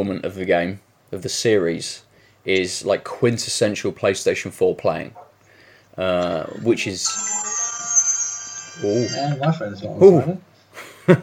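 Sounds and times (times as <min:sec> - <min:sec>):
speech: 0:00.0 - 0:05.2, 0:06.0 - 0:07.4, 0:08.8 - 0:10.5, 0:11.1 - 0:11.2
text message notification tone: 0:06.2 - 0:09.4.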